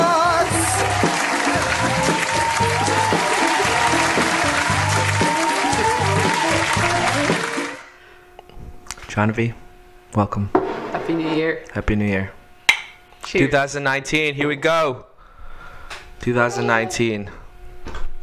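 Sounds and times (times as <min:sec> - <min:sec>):
audience applause: 0:00.1 - 0:07.9
speech: 0:09.2 - 0:12.4, 0:13.3 - 0:15.1, 0:15.9 - 0:18.0.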